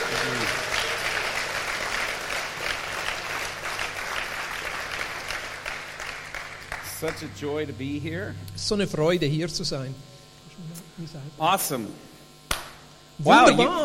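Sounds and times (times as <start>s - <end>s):
audience applause: 0.0s - 7.4s
speech: 7.0s - 10.1s, 11.0s - 12.1s, 13.2s - 13.8s.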